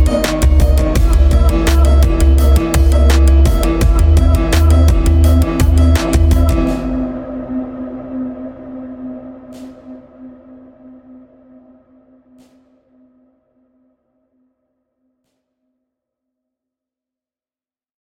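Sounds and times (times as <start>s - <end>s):
beats: 0.0s - 7.2s.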